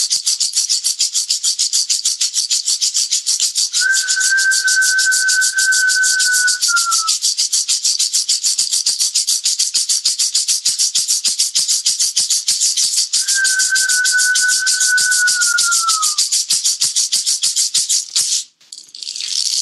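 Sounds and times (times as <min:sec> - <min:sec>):
shamanic rattle shaken: 0:00.0 - 0:19.6
long sustained whistled note: 0:03.8 - 0:07.1, 0:13.2 - 0:16.2.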